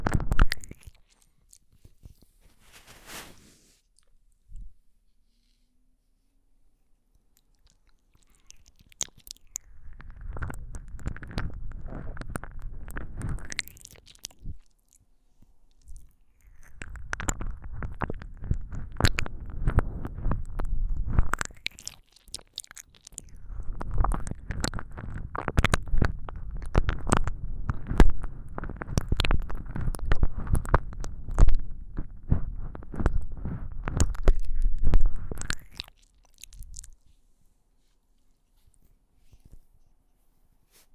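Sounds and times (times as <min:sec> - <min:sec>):
tongue pushed deep into an ear while licking: 0:00.0 - 0:03.4, 0:07.4 - 0:15.0, 0:15.7 - 0:37.1.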